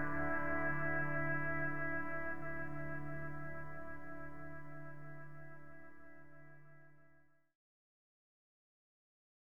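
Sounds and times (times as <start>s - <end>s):
drone: 0.0s - 6.4s.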